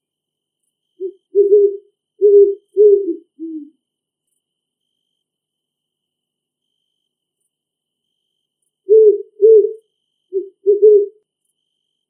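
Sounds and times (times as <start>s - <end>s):
great horned owl hooting in a big forest: 1.0s - 3.8s, 8.9s - 11.2s.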